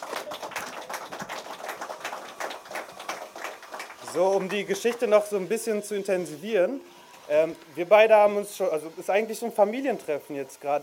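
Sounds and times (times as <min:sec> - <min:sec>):
crowd applauding: 0:00.0 - 0:05.4
speech: 0:04.1 - 0:10.8.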